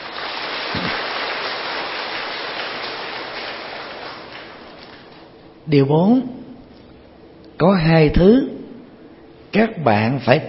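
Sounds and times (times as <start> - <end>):
audience applause: 0.0 - 5.0
speech: 5.7 - 6.4, 7.6 - 8.6, 9.5 - 10.4.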